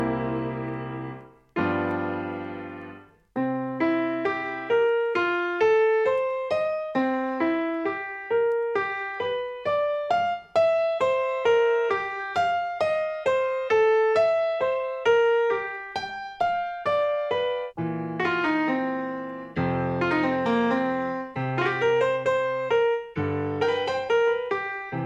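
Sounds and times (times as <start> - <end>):
piano: 0.0 - 25.0.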